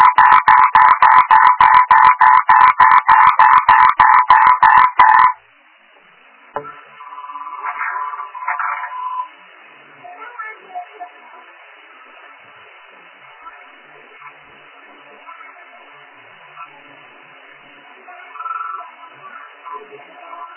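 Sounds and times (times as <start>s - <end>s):
frog croaking: 0.0s - 5.4s.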